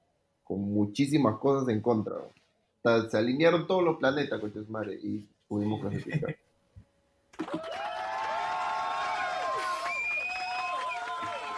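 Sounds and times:
speech: 0.5s - 6.4s
laughter: 7.4s - 7.8s
large crowd cheering and applauding: 7.4s - 11.5s
shouts and whistles: 7.6s - 11.5s.

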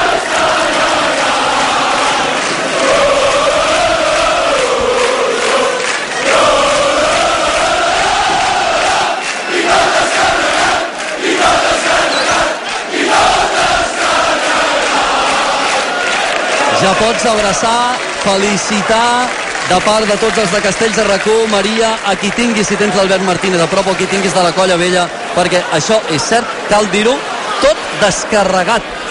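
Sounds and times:
crowd cheering at a castells festival of the Colla Vella: 0.0s - 29.1s
speech: 16.9s - 29.1s.

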